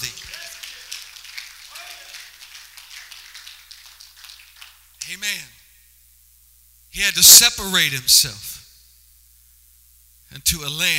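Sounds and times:
audience clapping hands: 0:00.0 - 0:05.1
speech: 0:05.1 - 0:05.6, 0:06.9 - 0:08.6, 0:10.3 - 0:10.9.

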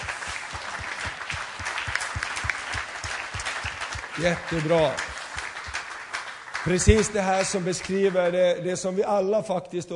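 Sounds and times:
rhythmic thumping pulse: 0:00.0 - 0:06.0
audience applause: 0:00.0 - 0:08.4
speech: 0:04.2 - 0:05.1, 0:06.6 - 0:09.9.

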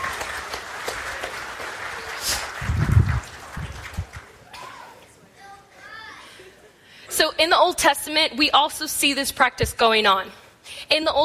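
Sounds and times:
audience applause: 0:00.0 - 0:04.5
speech: 0:07.4 - 0:11.2.

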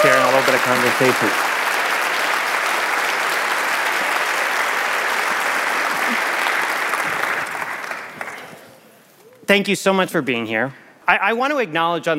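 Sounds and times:
audience applauding welcoming a speaker onto a stage: 0:00.0 - 0:08.8
speech: 0:00.6 - 0:01.6, 0:09.5 - 0:12.1.

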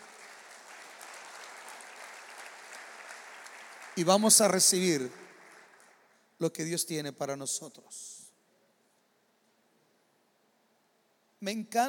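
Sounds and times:
audience applauding: 0:00.0 - 0:06.2
speech: 0:04.0 - 0:05.2, 0:06.4 - 0:08.2, 0:11.4 - 0:11.8.

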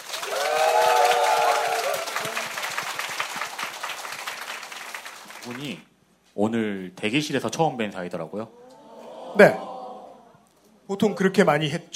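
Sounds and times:
audience applause: 0:00.0 - 0:05.8
speech: 0:05.6 - 0:08.6, 0:09.3 - 0:09.6, 0:11.0 - 0:11.9.

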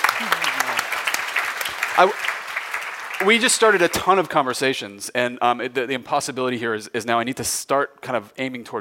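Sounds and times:
audience applause for a speaker at a panel on city climate solutions: 0:00.0 - 0:04.0
speech: 0:02.0 - 0:02.3, 0:03.2 - 0:08.7.

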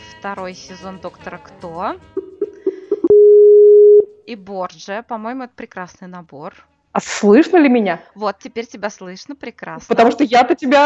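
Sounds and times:
speech: 0:00.2 - 0:02.2, 0:04.3 - 0:10.8
telephone beeps while a call is placed: 0:02.6 - 0:04.1.

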